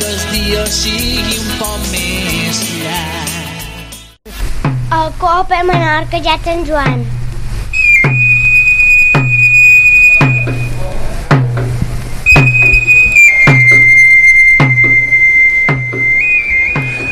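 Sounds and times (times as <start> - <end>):
speech: 0.3 - 3.2, 4.2 - 7.2
steady drumbeat: 4.6 - 5.0, 6.8 - 17.1
shrill fabiol pipe playing long high notes: 7.7 - 10.8, 12.2 - 17.1.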